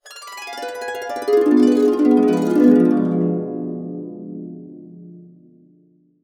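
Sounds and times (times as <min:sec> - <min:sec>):
harp descending cascade on D diminished seventh: 0:00.3 - 0:05.1.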